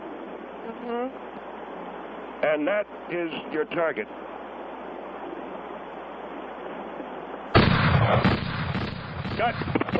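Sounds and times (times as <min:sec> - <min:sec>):
speech: 0:00.8 - 0:01.4, 0:02.4 - 0:04.2, 0:08.1 - 0:08.4, 0:09.4 - 0:09.9
gunshots during target practice: 0:07.5 - 0:09.9.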